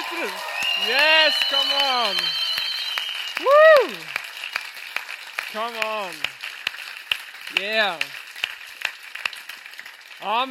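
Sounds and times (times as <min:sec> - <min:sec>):
audience applause and clapping: 0:00.0 - 0:10.4
speech: 0:00.2 - 0:02.4, 0:03.4 - 0:04.2, 0:05.5 - 0:06.3, 0:07.5 - 0:08.2, 0:10.2 - 0:10.4.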